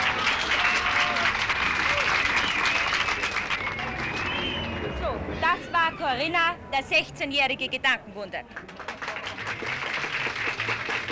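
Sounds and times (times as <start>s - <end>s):
audience applause: 0.0s - 4.8s, 8.6s - 11.1s
speech: 6.1s - 8.7s.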